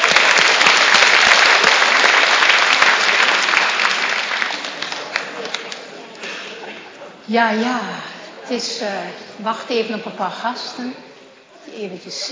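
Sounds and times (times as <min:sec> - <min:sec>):
audience applause: 0:00.0 - 0:06.6
speech: 0:07.3 - 0:11.1, 0:11.8 - 0:12.3.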